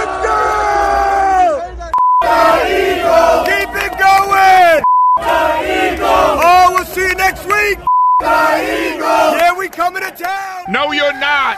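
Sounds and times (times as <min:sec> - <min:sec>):
rival fans chanting and cheering: 0:00.0 - 0:11.5
steady electronic beep: 0:01.9 - 0:02.3, 0:04.8 - 0:05.2, 0:07.8 - 0:08.2
speech: 0:10.0 - 0:11.5.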